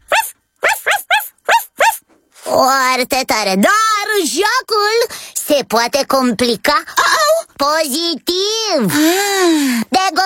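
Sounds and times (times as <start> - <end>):
person imitating puppy barking: 0.0 - 2.1
speech: 2.5 - 7.0, 7.6 - 10.2.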